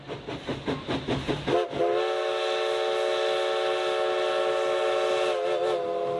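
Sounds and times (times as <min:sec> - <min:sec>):
historic steam locomotive chuffing: 0:00.0 - 0:06.1
historic steam locomotive whistle: 0:01.5 - 0:06.1.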